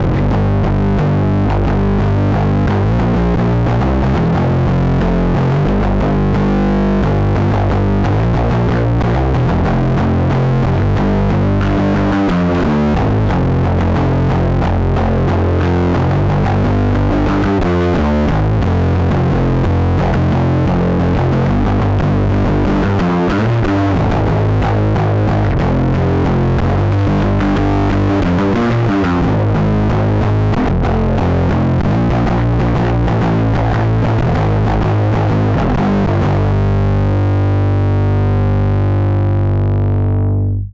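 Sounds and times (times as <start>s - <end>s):
distorted bass: 0.0s - 40.7s.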